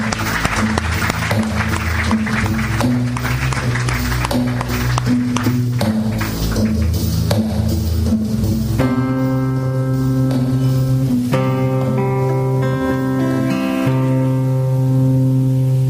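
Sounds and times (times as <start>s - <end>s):
audience applause: 0.0s - 7.3s
low sustained instrumental notes: 0.0s - 15.8s.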